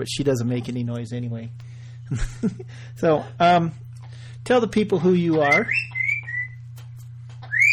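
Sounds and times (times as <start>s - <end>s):
speech: 0.0s - 3.8s, 4.4s - 5.9s
steady low hum: 0.0s - 7.7s
pet bird whistling: 5.4s - 6.6s, 7.4s - 7.7s.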